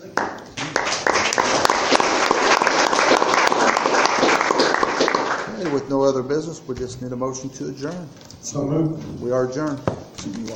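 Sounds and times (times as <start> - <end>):
audience applause: 0.0 - 5.9
speech: 5.9 - 10.5.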